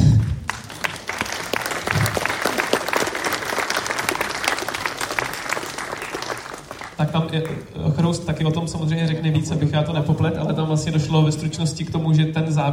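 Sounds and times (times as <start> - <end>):
audience applause: 0.0 - 7.1
speech: 7.0 - 12.7.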